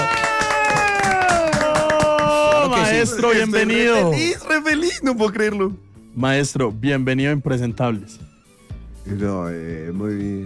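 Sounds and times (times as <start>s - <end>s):
audience applause: 0.0s - 3.3s
speech: 3.0s - 8.3s, 9.0s - 10.4s.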